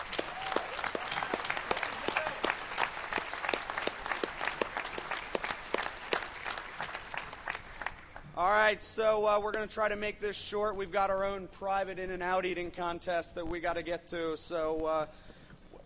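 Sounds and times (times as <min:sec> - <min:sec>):
audience round of applause: 0:00.0 - 0:08.3
speech: 0:08.7 - 0:15.3.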